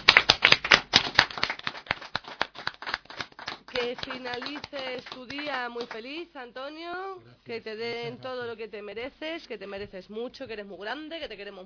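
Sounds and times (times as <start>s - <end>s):
applause from a few people on a Spanish-language show: 0.0s - 6.1s
speech: 3.8s - 11.6s.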